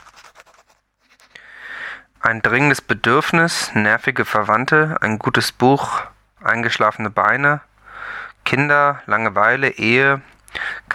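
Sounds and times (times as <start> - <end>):
pen scratching on a notepad: 0.0 - 1.4
speech: 2.2 - 7.7, 8.5 - 10.9.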